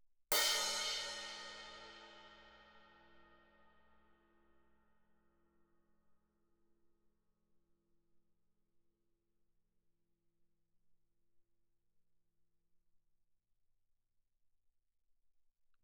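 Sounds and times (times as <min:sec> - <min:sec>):
suspended cymbal crash played with stick: 0:00.3 - 0:03.0.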